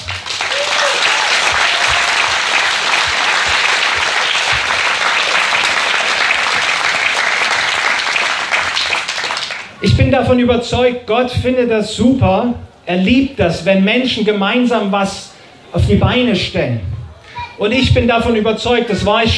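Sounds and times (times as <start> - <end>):
applause: 0.0 - 9.8
speech: 9.8 - 16.9, 17.6 - 19.3.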